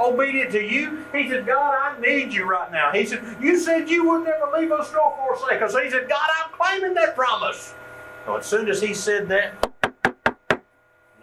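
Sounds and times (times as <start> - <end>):
speech: 0.1 - 9.7
firm knocks on the front door of a house: 9.6 - 10.7.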